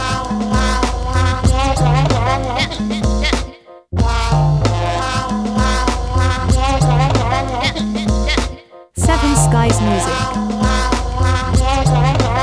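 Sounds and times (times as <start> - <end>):
fun upbeat music loop: 0.1 - 12.4.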